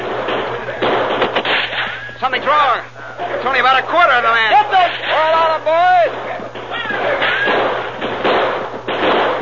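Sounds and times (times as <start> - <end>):
gunfire in a radio western shootout: 0.0 - 2.1, 6.0 - 9.4
noisy background: 0.0 - 9.4
speech: 2.3 - 6.3.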